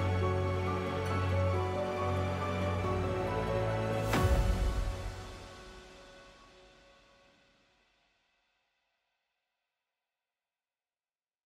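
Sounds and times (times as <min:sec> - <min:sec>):
epic heroic trailer music: 0:00.0 - 0:07.2.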